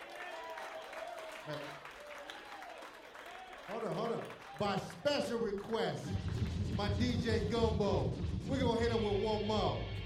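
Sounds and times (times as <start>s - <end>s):
audience applause: 0.0s - 7.2s
speech: 1.5s - 1.9s, 3.7s - 9.9s.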